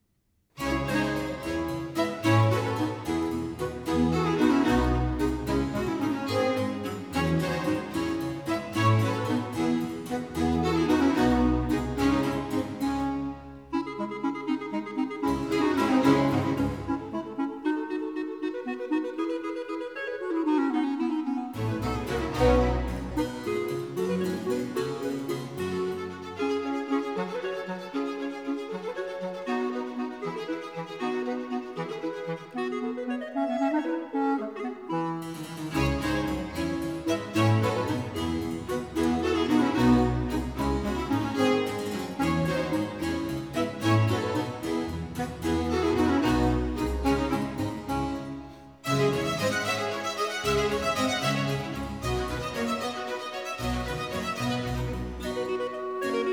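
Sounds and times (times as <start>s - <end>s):
baroque concerto for two chalumeaux, vivace movement: 0.6s - 56.3s.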